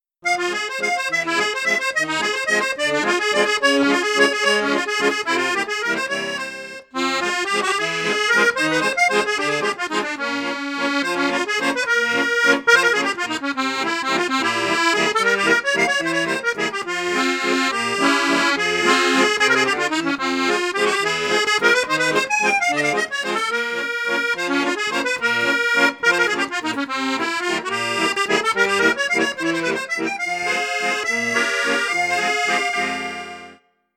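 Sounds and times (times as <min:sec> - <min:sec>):
accordion on high flute register: 0:00.0 - 0:33.9.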